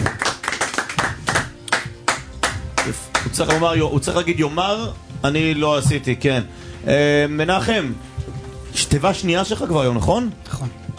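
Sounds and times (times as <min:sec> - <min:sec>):
small audience clapping: 0:00.0 - 0:03.8
speech: 0:02.9 - 0:08.1, 0:08.7 - 0:10.9.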